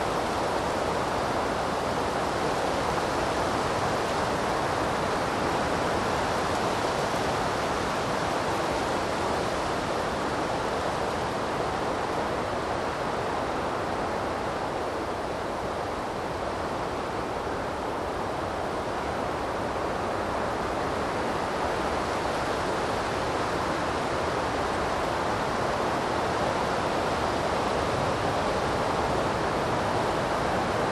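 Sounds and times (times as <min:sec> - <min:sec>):
river flowing in a forest: 0:00.0 - 0:30.8.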